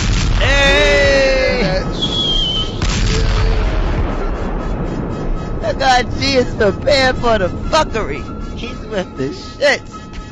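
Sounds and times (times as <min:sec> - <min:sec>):
grenade explosion sound effect: 0:00.0 - 0:06.8
heavy sustained low rumble: 0:00.0 - 0:10.3
grenade sound effect high whistle: 0:00.6 - 0:08.8
speech: 0:06.0 - 0:10.0.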